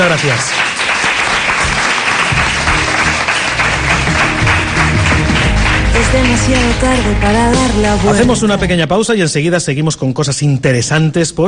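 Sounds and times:
speech: 0.0 - 0.7, 6.1 - 11.4
audience applause: 0.0 - 8.6.

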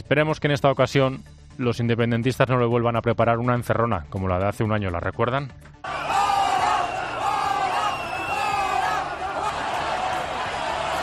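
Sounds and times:
speech: 0.1 - 6.0
crowd shouting and chanting in protest: 5.8 - 11.0.

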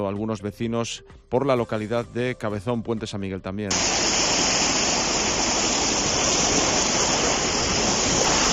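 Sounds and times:
speech: 0.0 - 4.4
swollen Saja river rushing: 3.7 - 8.5.

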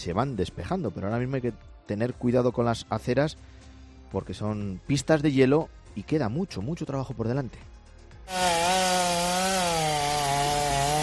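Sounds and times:
speech: 0.0 - 7.7, 8.3 - 9.0
chainsaw cutting dangerous tree branches after heavy snowfall in Madrid: 8.3 - 11.0.

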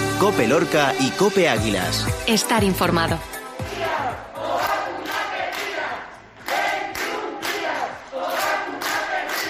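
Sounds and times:
speech: 0.2 - 3.3
healthcare workers' protest crowd chanting: 3.6 - 9.4.

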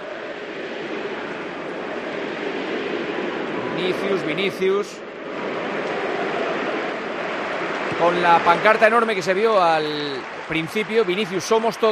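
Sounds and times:
crowd chanting: 0.0 - 8.8
applause and cheering: 0.0 - 11.9
stadium crowd roaring: 0.0 - 11.9
speech: 3.8 - 5.5, 8.0 - 11.9.

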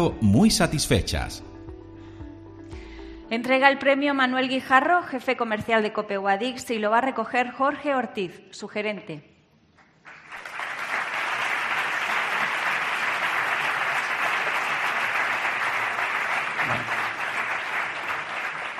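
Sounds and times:
speech: 0.0 - 1.5, 3.3 - 9.3
audience applause for award: 10.0 - 18.7.

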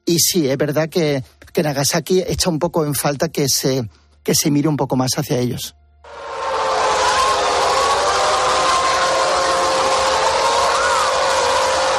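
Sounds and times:
speech: 0.1 - 6.3
air raid siren: 6.1 - 11.9.

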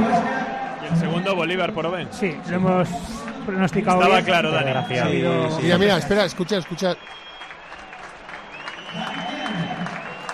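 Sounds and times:
faint murmur of voices: 0.0 - 6.4
speech: 0.9 - 7.3
crowd applauding: 3.1 - 5.0, 5.6 - 10.3.

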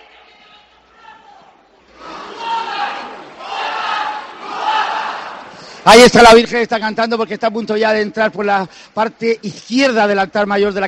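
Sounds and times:
crowd shouting during religious procession: 0.0 - 5.6
speech: 5.8 - 10.8.

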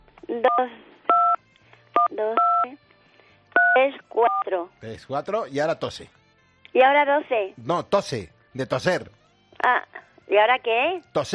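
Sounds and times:
speech: 0.3 - 0.9, 2.1 - 2.9, 3.8 - 11.3
telephone keypad dual-tone dialing tones: 2.0 - 2.7.

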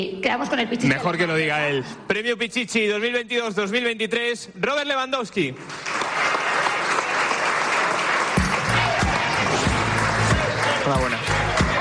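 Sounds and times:
speech: 0.0 - 6.0, 10.9 - 11.3
audience applause: 5.6 - 11.7.

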